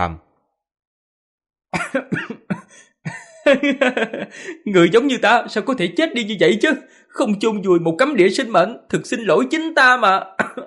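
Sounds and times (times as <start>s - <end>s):
speech: 0.0s - 0.2s, 1.7s - 2.4s, 3.5s - 10.6s
teenage boy laughing loudly and coughing up blood: 1.8s - 4.7s, 10.4s - 10.6s.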